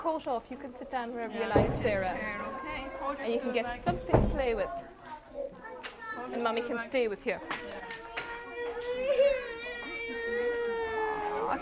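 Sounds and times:
speech: 0.0 - 5.0, 6.2 - 8.0
faint voices: 0.0 - 11.6
young child crying: 8.2 - 11.6.

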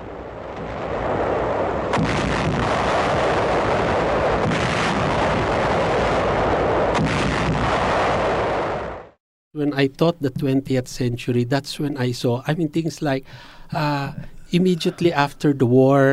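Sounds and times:
naval bombardment gunfire: 0.4 - 9.2
U.S. guns battling planes and destroyers: 0.6 - 8.7
speech: 9.6 - 16.1.

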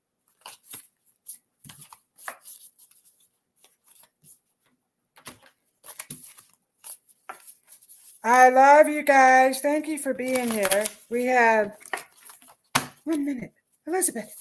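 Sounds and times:
deck of cards shuffled and a card pulled for a reading: 0.3 - 4.3, 5.2 - 8.4, 10.0 - 13.4
speech: 8.2 - 11.8, 13.1 - 14.3.

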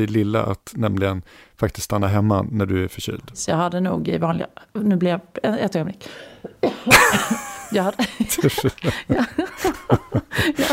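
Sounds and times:
speech: 0.0 - 10.7
coughing: 6.4 - 9.8
laughter: 6.9 - 10.7.

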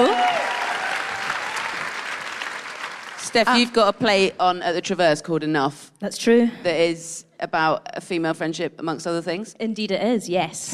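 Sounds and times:
round of applause: 0.0 - 3.6
speech: 3.3 - 10.7.

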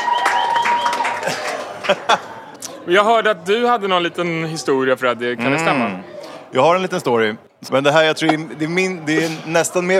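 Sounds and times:
audience applause: 0.0 - 2.2
laughter: 1.0 - 2.9
speech: 1.9 - 9.9.

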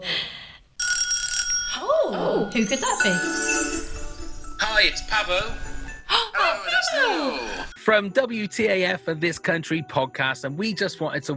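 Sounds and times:
bells ringing: 0.8 - 6.9
speech: 2.5 - 3.6, 4.8 - 11.3.

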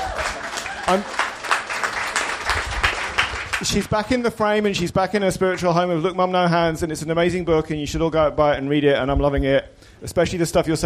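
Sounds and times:
audience applause: 0.0 - 3.9
speech: 0.9 - 1.2, 3.6 - 10.8.

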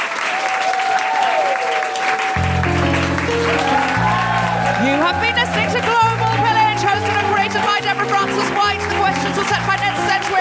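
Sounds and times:
audience applause: 0.0 - 10.4
low music: 2.4 - 10.4.

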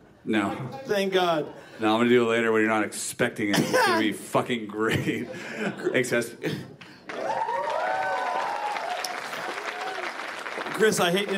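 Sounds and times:
speech: 0.2 - 6.8, 10.8 - 11.3
audience applause after a trick at a live magic comedy show: 7.0 - 11.3.

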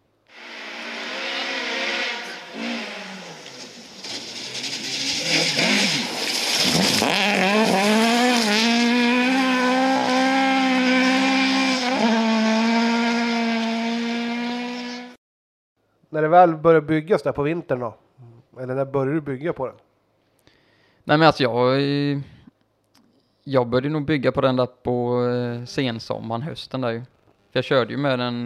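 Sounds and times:
tires skidding: 0.3 - 15.1
rally car engine revving: 0.3 - 15.2
speech: 16.2 - 18.0, 18.6 - 19.8, 21.1 - 22.4, 23.4 - 28.4.

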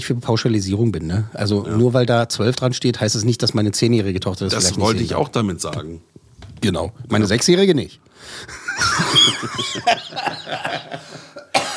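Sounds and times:
speech: 0.0 - 11.6
laughter: 8.4 - 11.7
harsh coughing after choking on something swallowed the wrong way: 10.2 - 11.7.

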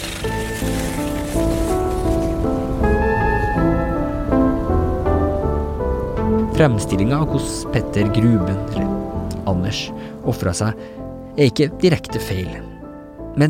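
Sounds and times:
storm with heavy rain: 0.0 - 10.2
sustained tonal music notes: 0.0 - 11.3
speech: 6.6 - 12.7.

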